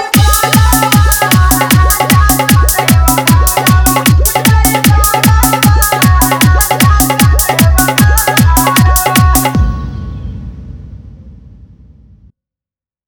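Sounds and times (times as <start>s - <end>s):
dholak bass dance mix: 0.0s - 9.9s.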